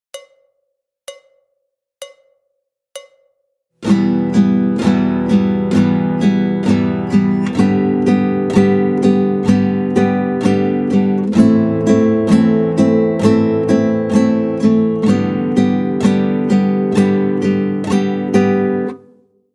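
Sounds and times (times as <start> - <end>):
guitar up and down strumming exercise: 3.8 - 19.0.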